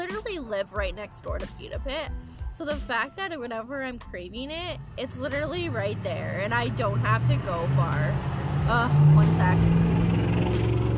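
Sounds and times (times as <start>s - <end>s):
speech: 0.2s - 9.8s
road traffic passing by: 3.6s - 10.9s.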